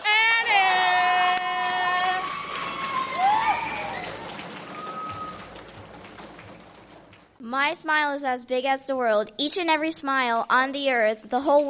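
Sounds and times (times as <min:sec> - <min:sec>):
crowd cheering for a poet: 0:00.0 - 0:07.0
applause for a poet: 0:00.0 - 0:07.4
speech: 0:07.6 - 0:11.6.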